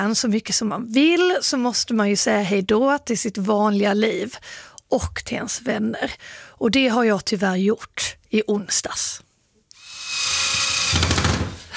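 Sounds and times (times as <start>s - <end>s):
speech: 0.0s - 9.3s
power screwdriver driving screws while assembling a World Cup sign on a floor: 9.7s - 11.6s.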